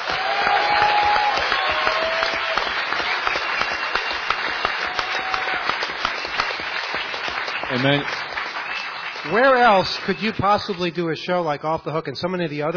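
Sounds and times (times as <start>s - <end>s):
audience applause: 0.0s - 11.1s
whistles: 3.2s - 4.7s, 8.6s - 10.4s
speech: 7.8s - 8.2s, 9.3s - 12.7s.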